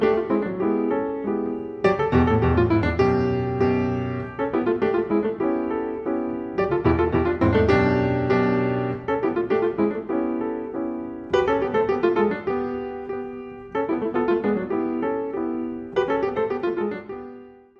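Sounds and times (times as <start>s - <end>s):
piano and percussion: 0.0s - 17.7s.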